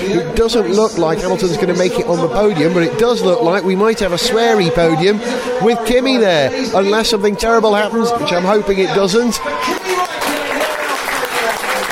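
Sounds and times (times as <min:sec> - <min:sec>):
speech: 0:00.1 - 0:10.0
bar crowd clapping and cheering a race win: 0:09.4 - 0:11.9.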